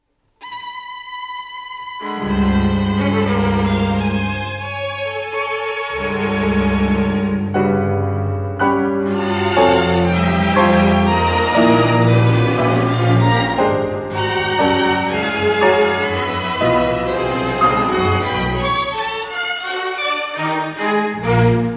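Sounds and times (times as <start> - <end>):
piano: 0.4 - 21.7
string orchestra: 1.9 - 21.7.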